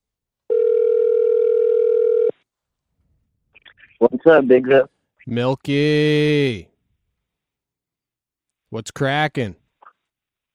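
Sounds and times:
electronic telephone dialing and ringing tone: 0:00.5 - 0:02.4
speech: 0:04.0 - 0:06.7, 0:08.7 - 0:09.6.

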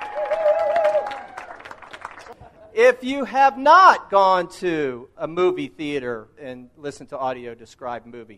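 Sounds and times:
audience applause: 0:00.0 - 0:02.4
speech: 0:02.8 - 0:08.3.

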